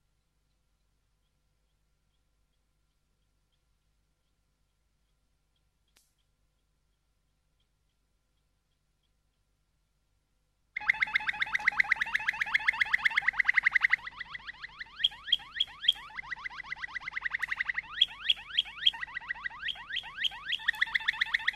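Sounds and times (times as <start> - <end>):
Waterslager canary song: 10.8 - 21.5.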